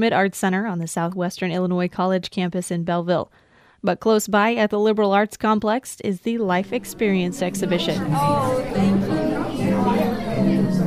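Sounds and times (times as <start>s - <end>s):
speech: 0.0s - 9.1s
crowd chatter at the opening night of a senior art exhibition: 6.6s - 10.8s.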